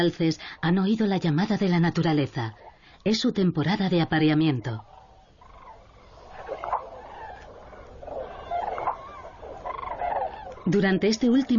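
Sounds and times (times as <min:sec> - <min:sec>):
speech: 0:00.0 - 0:04.9, 0:10.6 - 0:11.5
steady soft hiss: 0:00.0 - 0:11.5
flock of common cranes calling at night on a floodplain before migration: 0:04.0 - 0:11.5.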